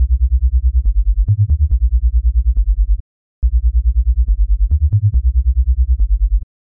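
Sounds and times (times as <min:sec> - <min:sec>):
three-step bass wobble: 0:00.0 - 0:06.4.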